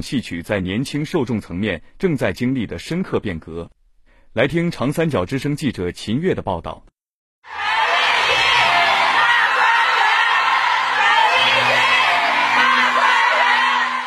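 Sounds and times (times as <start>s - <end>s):
speech: 0.0s - 3.8s, 4.4s - 7.6s
high-pitched cheering and shouting: 7.4s - 14.0s
packed theater audience applauding: 7.5s - 14.0s.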